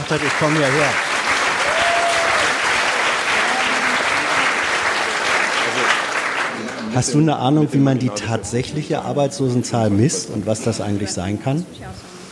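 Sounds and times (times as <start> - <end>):
audience applause: 0.0 - 7.3
speech: 0.1 - 1.0, 6.8 - 12.1.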